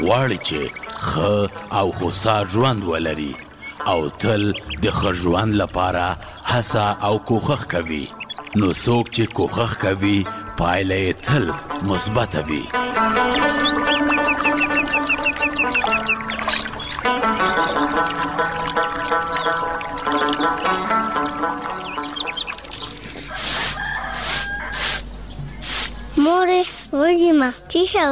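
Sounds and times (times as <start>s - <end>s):
speech: 0.0s - 13.6s, 26.3s - 28.0s
layered melodic music: 0.0s - 23.2s
chickens clucking: 12.7s - 26.1s.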